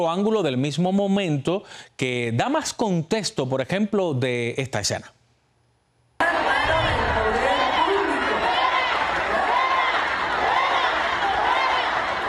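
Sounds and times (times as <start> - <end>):
speech: 0.0 - 5.2
crowd shouting at protester with megaphone: 6.2 - 12.2.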